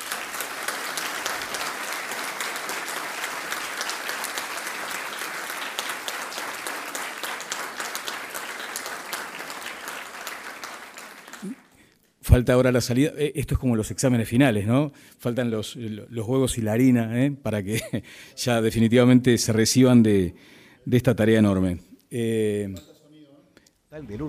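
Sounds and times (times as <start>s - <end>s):
audience applauding: 0.0s - 11.8s
speech: 12.3s - 22.9s, 23.9s - 24.2s.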